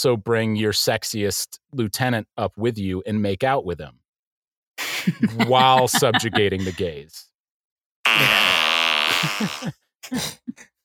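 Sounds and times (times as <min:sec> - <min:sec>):
speech: 0:00.0 - 0:04.0, 0:05.0 - 0:07.3, 0:08.2 - 0:08.5, 0:09.2 - 0:10.7
laughter: 0:04.9 - 0:06.9, 0:08.2 - 0:10.2
long loud buzzy fart noise: 0:08.1 - 0:09.8.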